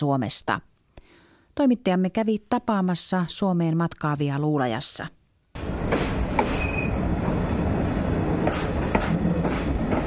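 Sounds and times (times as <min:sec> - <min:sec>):
speech: 0:00.0 - 0:00.8, 0:01.6 - 0:05.2, 0:05.9 - 0:06.5
night train rattling into a small station in Luleå: 0:05.6 - 0:10.0
train wheel metallic clacks and squeals: 0:06.4 - 0:07.0.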